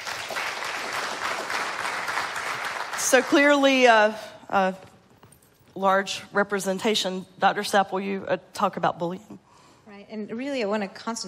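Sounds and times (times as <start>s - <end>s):
audience clapping at an event about bullying: 0.0s - 3.7s
speech: 3.0s - 4.9s, 5.8s - 9.4s, 10.1s - 11.2s.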